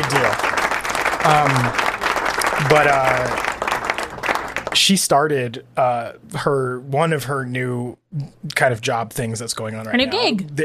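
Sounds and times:
hands clapping: 0:00.0 - 0:05.0
speech: 0:02.6 - 0:03.5, 0:04.8 - 0:10.6.

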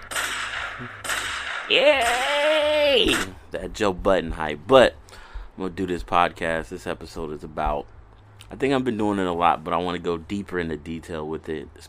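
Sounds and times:
gunshot sound effects: 0:00.0 - 0:02.2
speech: 0:00.8 - 0:01.0, 0:01.7 - 0:05.0, 0:05.6 - 0:11.8.

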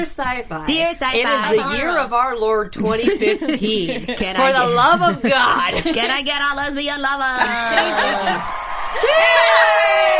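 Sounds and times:
speech: 0:00.0 - 0:10.1
people chuckling: 0:03.0 - 0:06.2, 0:07.4 - 0:08.5
live studio audience cheering and whooping: 0:07.4 - 0:10.1.

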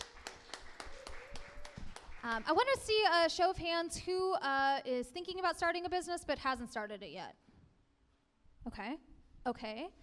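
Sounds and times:
audience applause: 0:00.0 - 0:02.5
speech: 0:02.2 - 0:07.4, 0:08.6 - 0:10.0.

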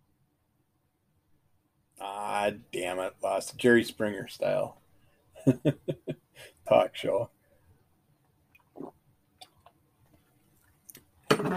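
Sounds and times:
speech: 0:02.5 - 0:04.8, 0:05.4 - 0:07.4, 0:11.4 - 0:11.5
mouth clicks: 0:08.6 - 0:09.8
person taking a swig of a drink: 0:08.6 - 0:09.8.

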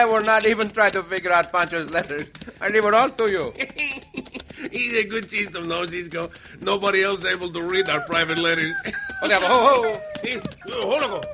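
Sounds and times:
clicks and scuffs: 0:00.0 - 0:11.3
laughter: 0:00.0 - 0:11.3
speech: 0:00.0 - 0:11.3
dog whining: 0:07.7 - 0:11.3.

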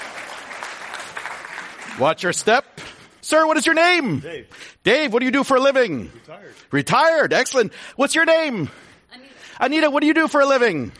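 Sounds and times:
audience applause: 0:00.0 - 0:02.2
speech: 0:02.0 - 0:10.9.

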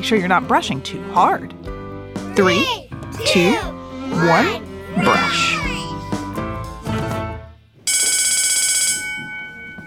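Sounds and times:
speech: 0:00.0 - 0:01.7, 0:02.4 - 0:05.7
school bell ringing: 0:07.9 - 0:09.8.

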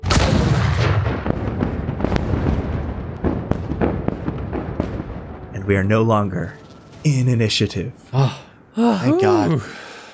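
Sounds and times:
explosions from a chain reaction of mines inside a panther monster: 0:00.0 - 0:05.8
speech: 0:05.7 - 0:09.8.

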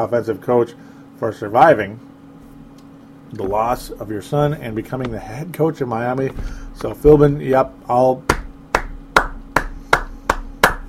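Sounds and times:
speech: 0:00.0 - 0:02.1, 0:03.3 - 0:08.3
one person's sharp hand claps: 0:08.3 - 0:10.8.

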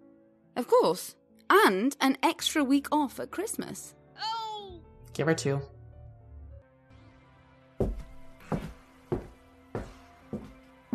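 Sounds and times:
speech: 0:00.6 - 0:04.0, 0:05.2 - 0:05.8
footsteps: 0:07.8 - 0:10.9.

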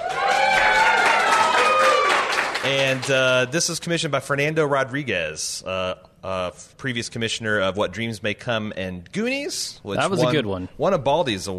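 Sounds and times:
cheering voices: 0:00.0 - 0:02.5
studio audience applauding: 0:00.0 - 0:03.5
speech: 0:02.7 - 0:11.5.

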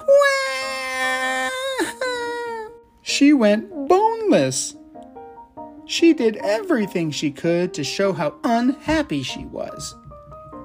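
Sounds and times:
little girl bawling: 0:00.0 - 0:02.8
speech: 0:03.2 - 0:04.8, 0:05.9 - 0:10.0.

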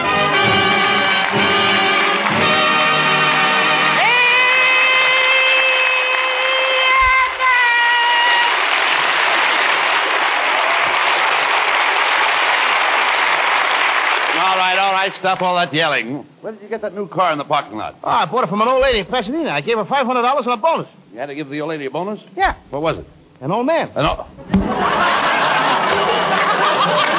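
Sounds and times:
studio audience applauding and cheering: 0:00.0 - 0:15.4
speech: 0:15.2 - 0:25.1
laughter: 0:24.4 - 0:27.1.

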